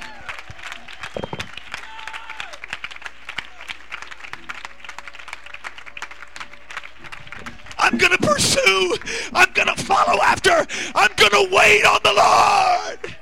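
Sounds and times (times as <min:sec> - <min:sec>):
audience clapping hands in praise: 0:00.0 - 0:12.2
speech: 0:08.7 - 0:10.2, 0:11.3 - 0:12.9.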